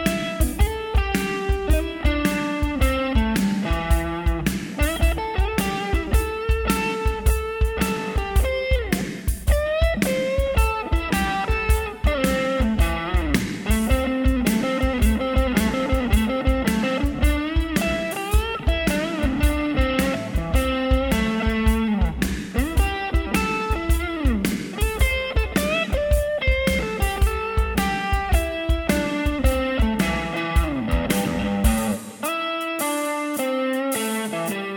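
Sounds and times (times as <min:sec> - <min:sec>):
blues bass guitar backing: 0:00.0 - 0:34.7.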